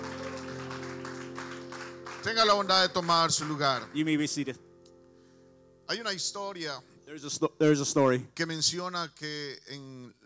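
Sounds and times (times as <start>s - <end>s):
audience applauding: 0.0s - 4.0s
speech: 2.2s - 4.7s, 5.9s - 10.2s.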